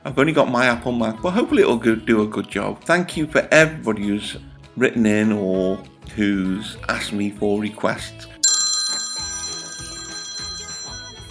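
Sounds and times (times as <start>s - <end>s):
speech: 0.0s - 8.3s
telephone ringing: 8.4s - 11.3s.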